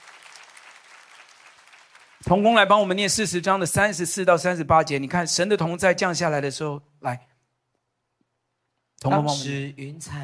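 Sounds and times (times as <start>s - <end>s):
audience clapping loudly: 0.0s - 3.1s
speech: 2.2s - 7.3s, 9.0s - 10.2s.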